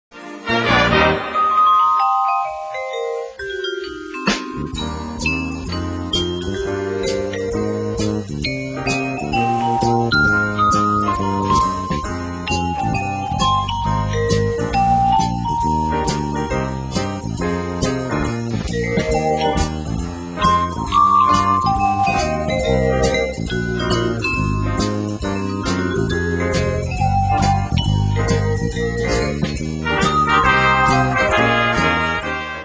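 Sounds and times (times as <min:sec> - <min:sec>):
vibraphone: 0:01.2 - 0:32.4.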